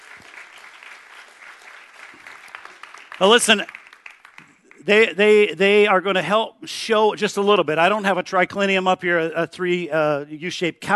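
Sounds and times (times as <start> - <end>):
audience applause: 0.0 - 4.9
speech: 3.2 - 3.8, 4.8 - 10.9.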